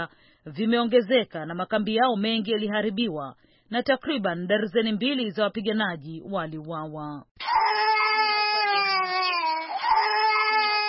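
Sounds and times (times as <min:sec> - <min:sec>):
speech: 0:00.0 - 0:07.6
infant wailing inside the Catholic church of Obili in Yaoundé: 0:07.4 - 0:10.8.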